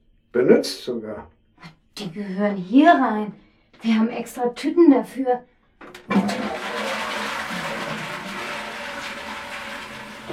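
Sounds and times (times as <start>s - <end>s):
speech: 0.4s - 6.1s
toilet being flushed: 5.8s - 10.3s.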